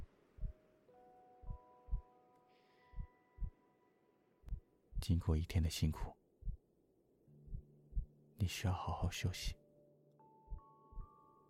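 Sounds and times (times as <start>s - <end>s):
slow heartbeat: 0.0s - 0.6s, 1.4s - 2.1s, 2.9s - 3.6s, 4.5s - 5.2s, 6.4s - 6.6s, 7.4s - 8.2s, 10.5s - 11.1s
speech: 5.0s - 6.2s, 8.4s - 9.6s.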